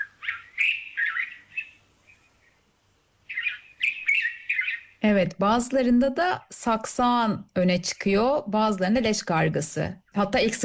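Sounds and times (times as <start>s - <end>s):
white-spectacled bulbul singing: 0.0s - 2.6s, 3.2s - 5.0s
speech: 5.0s - 10.6s.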